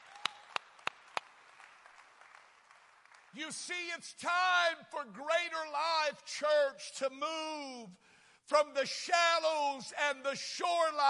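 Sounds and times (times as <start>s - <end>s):
hands clapping in praise: 0.0s - 3.4s
speech: 3.3s - 11.0s.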